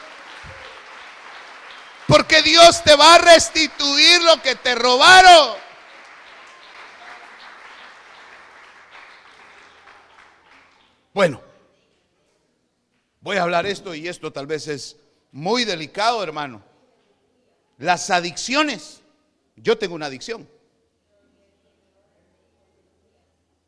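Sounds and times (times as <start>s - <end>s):
audience clapping: 0.0s - 11.3s
speech: 2.1s - 5.6s, 11.2s - 11.5s, 13.2s - 16.7s, 17.8s - 19.0s, 19.6s - 20.5s.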